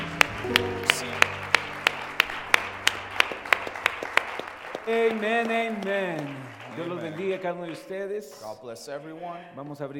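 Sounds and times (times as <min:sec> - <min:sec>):
audience clapping in a steady even rhythm: 0:00.0 - 0:09.2
sustained keyboard or organ tones: 0:00.4 - 0:02.0
speech: 0:00.5 - 0:01.2, 0:04.9 - 0:09.9.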